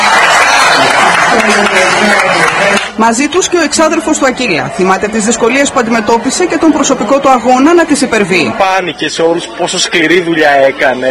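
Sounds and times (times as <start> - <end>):
crowd applauding in the town centre of Serres watching a semifinal: 0.0 - 4.1
speech: 1.3 - 11.0.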